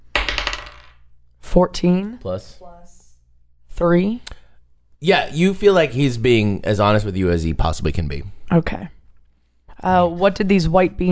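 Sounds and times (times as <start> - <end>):
dice rattling across a hard surface: 0.1 - 1.1
speech: 1.5 - 3.0, 3.8 - 4.3, 5.0 - 9.0, 9.8 - 11.0.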